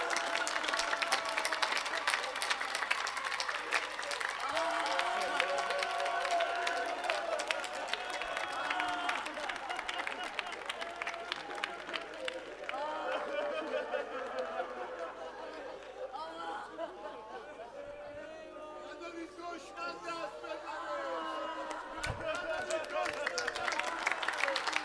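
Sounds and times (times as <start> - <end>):
crowd applauding the bride and groom at a wedding: 0.0 - 16.2, 21.5 - 24.8
laughter: 4.4 - 24.8.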